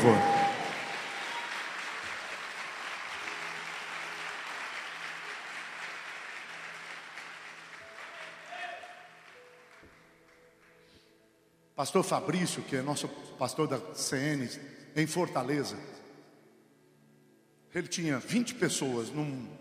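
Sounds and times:
speech: 0.0s - 0.3s, 11.8s - 16.0s, 17.7s - 19.5s
audience applause: 0.0s - 9.9s.

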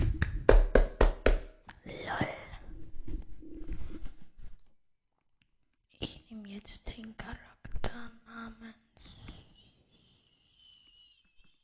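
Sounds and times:
one person clapping hands: 0.0s - 1.6s.

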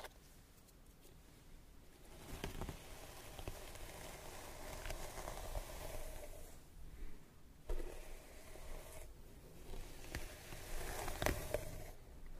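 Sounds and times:
scalp massage rubbing: 2.1s - 6.7s, 7.7s - 12.0s
hair brushing: 2.7s - 6.6s, 7.7s - 12.0s.

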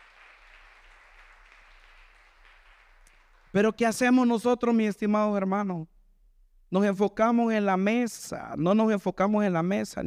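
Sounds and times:
audience applauding: 0.0s - 3.9s
speech: 3.6s - 5.9s, 6.7s - 10.0s.

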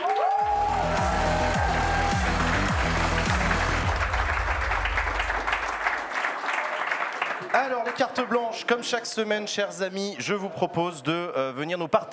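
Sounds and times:
audience applauding loudly: 0.0s - 8.9s
speech: 8.0s - 12.1s.

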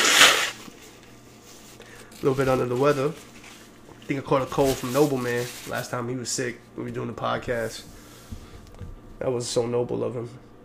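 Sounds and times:
nose blowing: 0.0s - 0.7s
speech: 2.2s - 3.3s, 4.1s - 8.0s, 9.2s - 10.6s.

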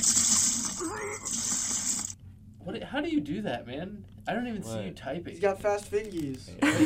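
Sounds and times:
vomiting sound effect: 0.8s - 1.4s
speech: 2.6s - 6.8s.

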